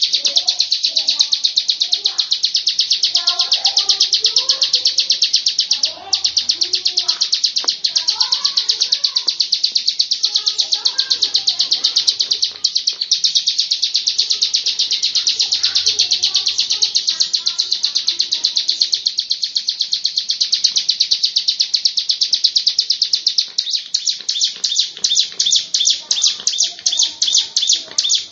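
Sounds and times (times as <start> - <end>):
lovebird chattering: 0.0 - 28.3
soft bird chirps: 0.0 - 28.3.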